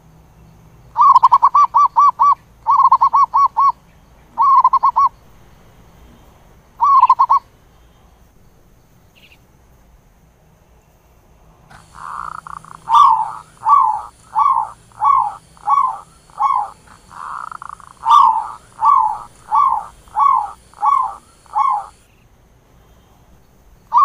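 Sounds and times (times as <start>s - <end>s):
zebra dove cooing: 1.0s - 3.8s, 4.4s - 5.1s, 6.8s - 7.4s, 11.7s - 22.0s.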